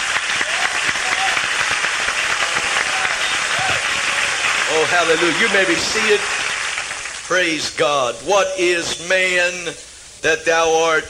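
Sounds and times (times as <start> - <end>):
audience clapping hands: 0.0 - 7.5
voices calling out faintly: 2.2 - 6.5
speech: 4.8 - 6.4, 7.3 - 11.0.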